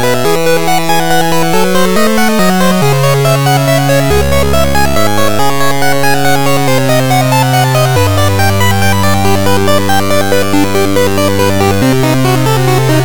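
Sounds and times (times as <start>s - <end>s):
diminished arpeggio: 0.0s - 13.0s.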